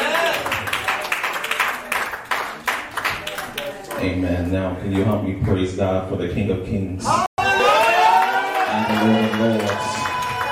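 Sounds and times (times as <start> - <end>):
audience clapping: 0.0 - 4.0, 7.6 - 10.5
speech: 4.0 - 7.3, 9.0 - 10.1.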